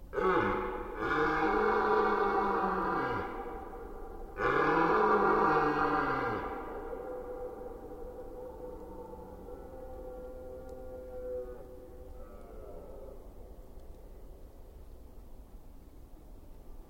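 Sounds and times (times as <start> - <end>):
red deer stag roaring during the rut in Forêt d'Orleans, France: 0.1 - 13.2.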